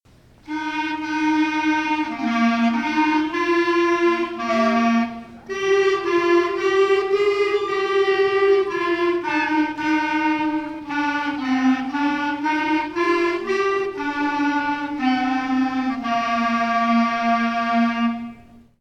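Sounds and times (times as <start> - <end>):
clarinet: 0.4 - 18.7.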